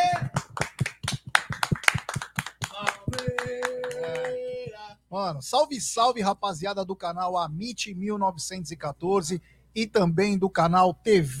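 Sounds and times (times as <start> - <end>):
round of applause: 0.0 - 4.5
speech: 5.2 - 11.3.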